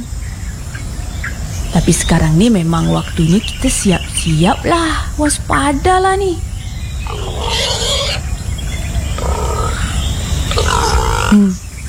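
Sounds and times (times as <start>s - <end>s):
low rumble: 0.0s - 11.8s
speech: 1.8s - 6.5s, 7.1s - 8.0s, 11.3s - 11.6s
wild boar grunting: 7.0s - 11.7s.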